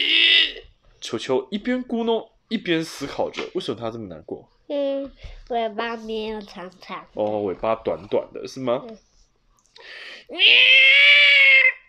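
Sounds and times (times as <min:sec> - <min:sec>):
speech: 0:01.1 - 0:09.1, 0:09.8 - 0:11.8
cat meowing: 0:10.3 - 0:11.8.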